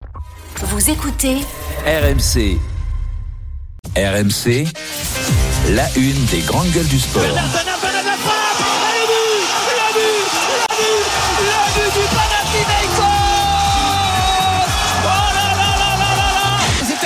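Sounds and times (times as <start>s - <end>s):
speech: 0.7s - 2.7s, 4.0s - 7.7s
Panathinaikos football supporters cheering: 7.3s - 17.0s.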